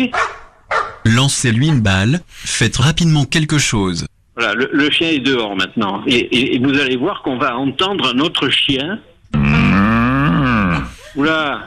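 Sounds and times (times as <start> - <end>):
speech: 0.0 - 0.3, 1.0 - 9.5, 11.2 - 11.6
cow mooing: 9.4 - 11.0.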